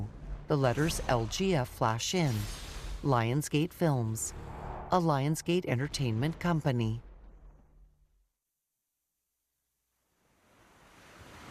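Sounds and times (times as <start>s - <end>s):
speech: 0.5s - 7.0s
surf gently lapping a beach at dawn: 10.4s - 11.4s.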